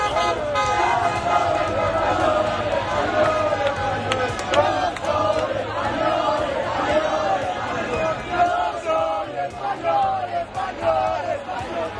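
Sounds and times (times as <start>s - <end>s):
car horns tooting: 0.0s - 2.7s
street crowd shouting and cheering after victory: 0.0s - 11.9s.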